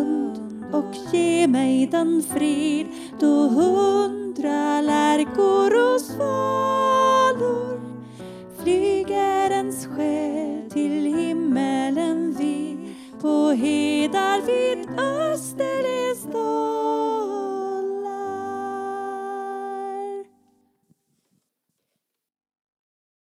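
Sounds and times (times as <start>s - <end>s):
soprano singing: 0.0s - 20.5s.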